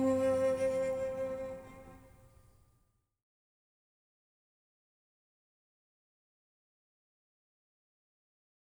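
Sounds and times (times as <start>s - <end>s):
sarabande: 0.0s - 2.1s.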